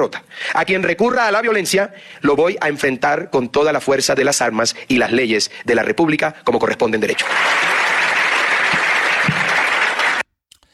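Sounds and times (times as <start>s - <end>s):
speech: 0.0s - 7.8s
audience applause: 7.2s - 10.3s.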